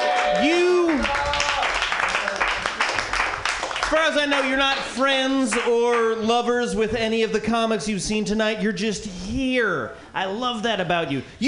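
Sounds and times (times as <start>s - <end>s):
comedy show audience clapping: 0.0s - 6.2s
speech: 4.2s - 11.4s.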